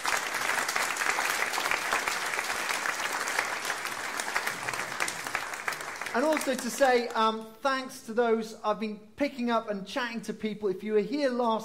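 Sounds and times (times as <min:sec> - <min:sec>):
church audience applause: 0:00.0 - 0:07.1
speech: 0:06.2 - 0:11.6.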